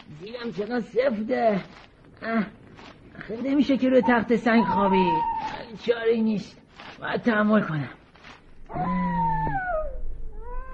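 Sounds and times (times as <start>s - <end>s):
speech: 0.2s - 8.0s, 8.7s - 9.2s
wolf howling: 4.0s - 5.7s, 8.7s - 10.7s.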